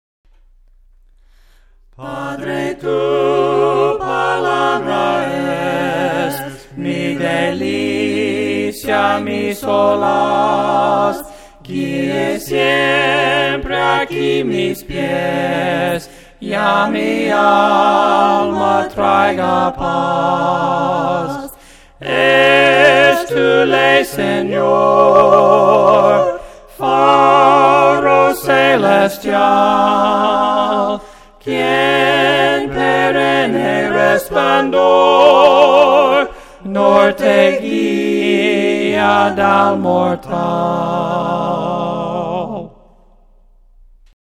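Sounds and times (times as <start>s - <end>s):
voices singing hymns a cappella: 1.3s - 43.4s.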